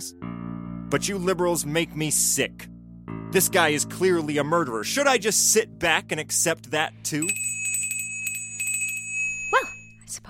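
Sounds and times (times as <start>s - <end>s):
speech: 0.0s - 7.4s
dinner bell ringing: 7.1s - 10.2s.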